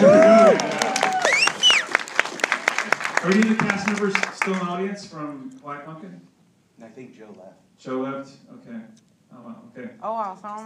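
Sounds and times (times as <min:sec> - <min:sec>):
loud whoop: 0:00.0 - 0:01.9
small crowd cheering and clapping: 0:00.0 - 0:04.6
speech: 0:03.3 - 0:10.6.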